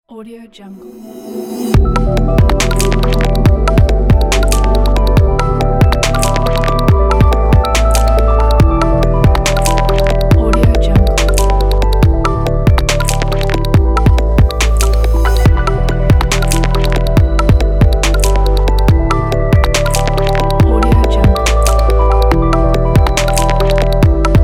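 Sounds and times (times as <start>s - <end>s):
minimal background electronic music: 0.2s - 24.4s.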